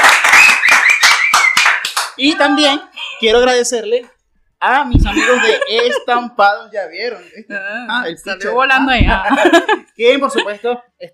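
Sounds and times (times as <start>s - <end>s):
applause: 0.0s - 2.2s
speech: 2.2s - 11.1s
laughter: 5.0s - 6.3s, 8.9s - 10.6s.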